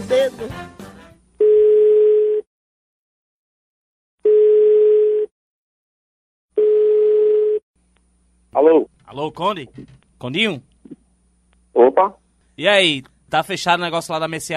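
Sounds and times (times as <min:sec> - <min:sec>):
speech: 0:00.1 - 0:00.8, 0:08.6 - 0:10.7, 0:11.8 - 0:14.5
telephone call tones while calling again: 0:01.4 - 0:02.5, 0:04.2 - 0:05.3, 0:06.6 - 0:07.6.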